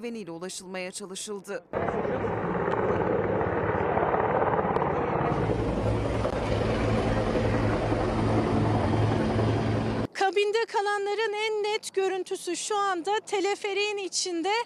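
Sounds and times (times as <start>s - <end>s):
speech: 0.0s - 3.4s, 10.3s - 14.6s
helicopter flying overhead: 1.7s - 10.1s.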